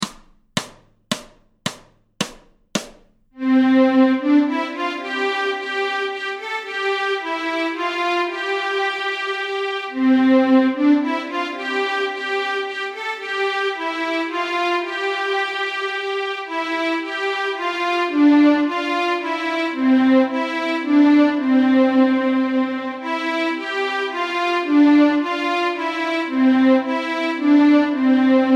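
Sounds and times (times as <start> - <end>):
fiddle playing a long dance tune in C: 3.4 - 28.5.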